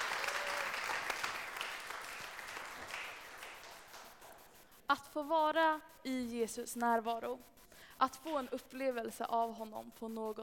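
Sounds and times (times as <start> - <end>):
audience applause: 0.0 - 4.2
speech: 4.9 - 10.4.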